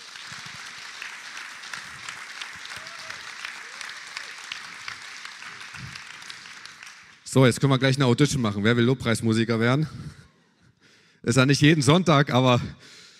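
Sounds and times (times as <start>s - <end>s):
audience applause: 0.0s - 7.3s
faint cheers: 2.6s - 4.6s
speech: 7.3s - 10.2s, 11.2s - 13.0s.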